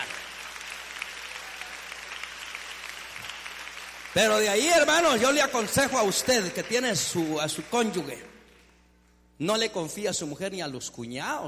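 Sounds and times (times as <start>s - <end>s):
audience applause: 0.0s - 8.2s
speech: 4.2s - 8.4s, 9.4s - 11.4s.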